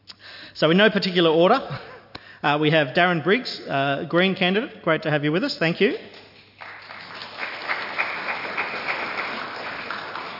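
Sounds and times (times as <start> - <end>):
speech: 0.6 - 6.2
audience applause: 6.6 - 10.3.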